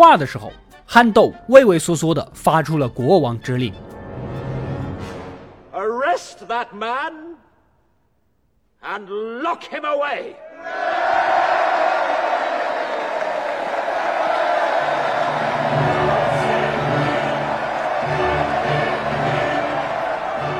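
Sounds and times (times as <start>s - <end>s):
speech: 0.0s - 3.9s, 5.8s - 7.4s, 8.8s - 11.1s
large crowd standing up and cheering: 10.5s - 20.5s.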